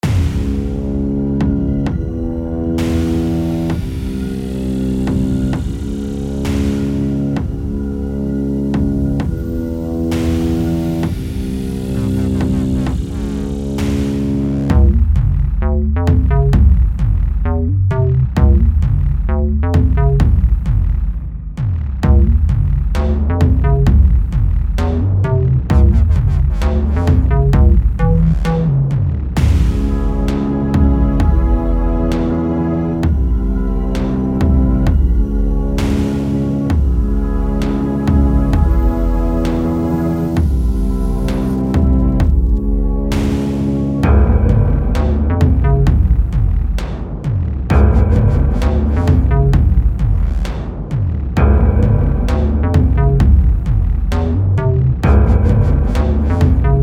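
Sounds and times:
doom music loop: 0:00.0 - 0:56.8.

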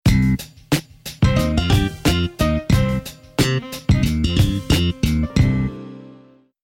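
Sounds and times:
defeat jingle: 0:01.3 - 0:06.4.

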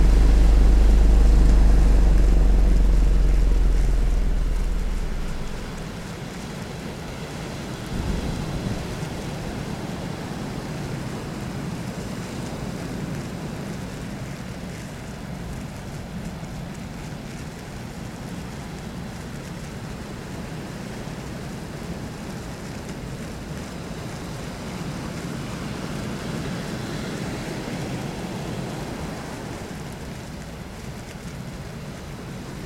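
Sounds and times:
molten ambience: 0:00.0 - 0:06.2.

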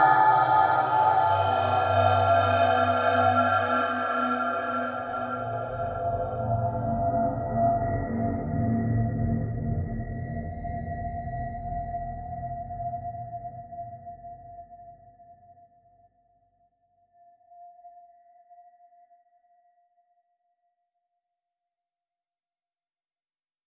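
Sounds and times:
ambience: 0:00.0 - 0:14.1.

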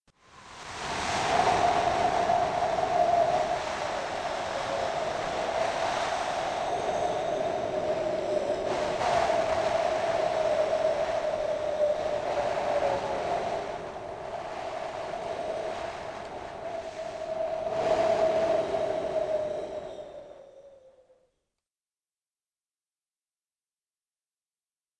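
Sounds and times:
wind: 0:00.1 - 0:21.4.

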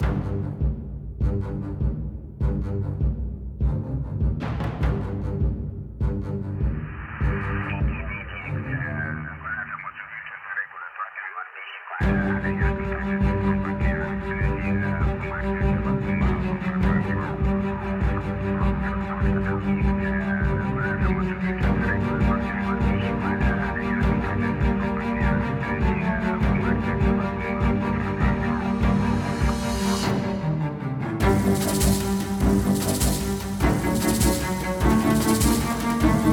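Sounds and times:
action music at 140 bpm: 0:00.0 - 0:10.2, 0:12.0 - 0:36.3.

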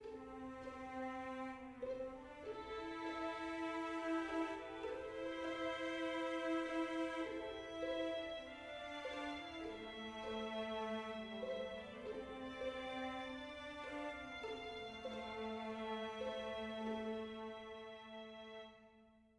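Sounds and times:
soft adventure music: 0:00.0 - 0:19.3.

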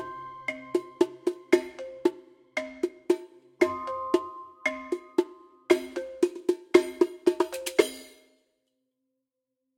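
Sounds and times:
upbeat music: 0:00.0 - 0:06.5.

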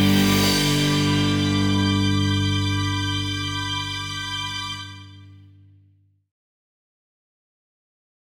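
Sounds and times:
angelic wind instrumental: 0:00.0 - 0:05.2.

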